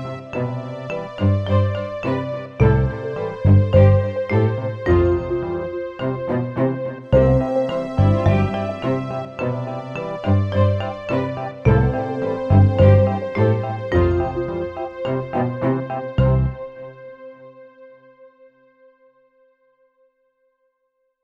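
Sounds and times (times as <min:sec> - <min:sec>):
funny and cute music without drums: 0:00.0 - 0:16.7.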